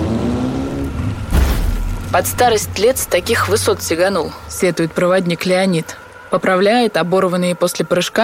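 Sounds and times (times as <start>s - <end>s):
snowmobile engine driving over river ice: 0.0s - 4.9s
speech: 2.1s - 8.2s.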